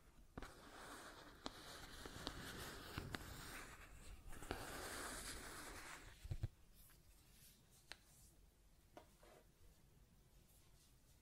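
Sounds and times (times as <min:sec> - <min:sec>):
scratching and tracing: 0:00.0 - 0:06.5.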